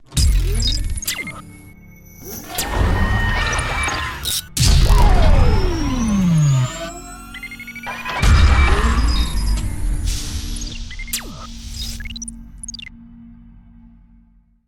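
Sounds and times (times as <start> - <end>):
futuristic launching gimmick intro: 2.3 - 12.9.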